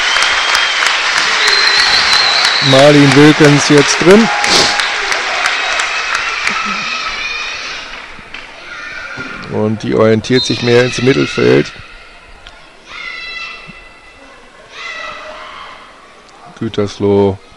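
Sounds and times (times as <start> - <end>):
stadium crowd applause: 0.0 - 8.1
speech: 2.6 - 4.5, 9.6 - 11.8, 16.6 - 17.5.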